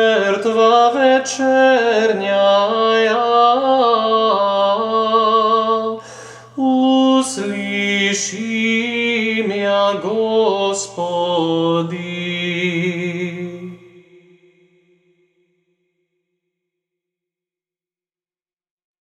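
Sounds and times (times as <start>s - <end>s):
Serbian chant: 0.0s - 15.2s.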